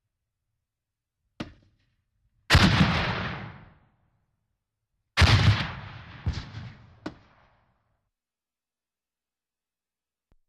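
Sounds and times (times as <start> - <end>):
grenade launcher shots: 2.5 - 3.7, 5.2 - 7.3.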